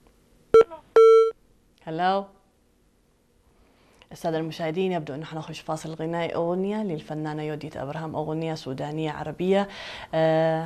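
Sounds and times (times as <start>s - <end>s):
telephone call tones on live Eritrean satellite TV call-in: 0.6s - 1.4s
speech: 1.9s - 2.4s, 4.1s - 10.6s.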